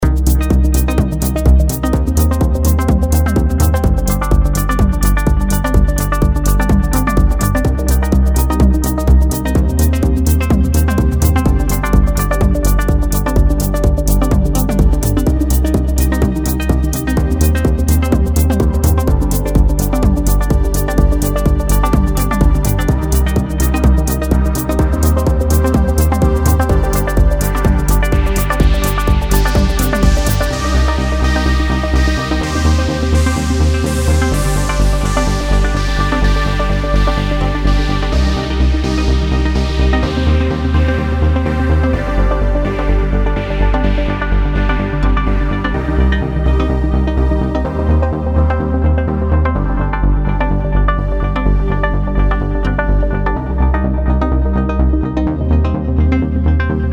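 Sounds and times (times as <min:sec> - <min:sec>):
Sylenth1 synthesizer: 0:00.0 - 0:56.9.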